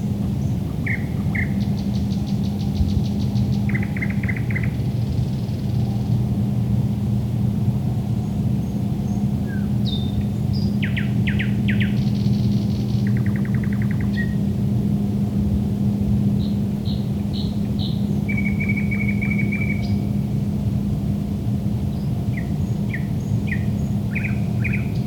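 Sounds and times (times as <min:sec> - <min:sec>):
low hum and rumble: 0:00.0 - 0:25.0
thrush nightingale song: 0:00.4 - 0:04.8, 0:09.5 - 0:14.4, 0:16.4 - 0:20.1, 0:21.9 - 0:25.0.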